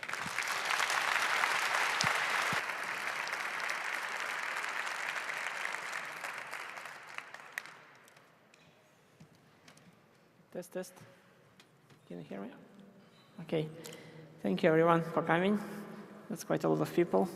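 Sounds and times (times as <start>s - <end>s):
audience applause: 0.0s - 8.2s
speech: 10.6s - 11.2s, 12.1s - 12.7s, 13.4s - 17.3s.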